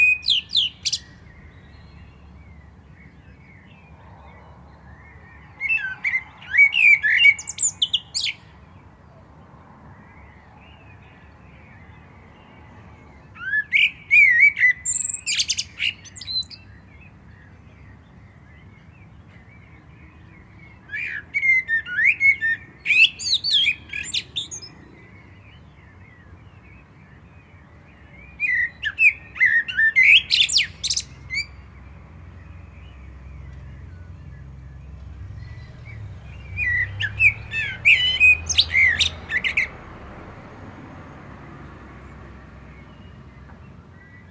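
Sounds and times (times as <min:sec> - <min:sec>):
common blackbird singing: 0:00.0 - 0:40.5, 0:42.0 - 0:44.2.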